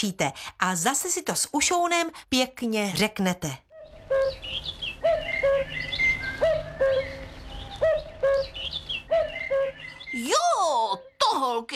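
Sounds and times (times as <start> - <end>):
speech: 0.0 - 4.7, 10.2 - 11.7
cuckoo calling: 3.7 - 11.4
birds chirping and twittering: 3.7 - 11.6.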